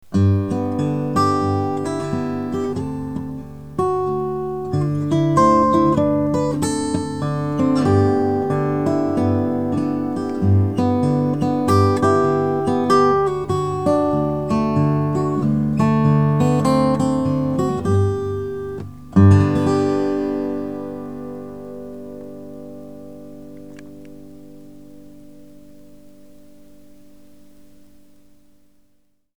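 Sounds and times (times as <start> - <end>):
guitar mix: 0.0 - 29.2.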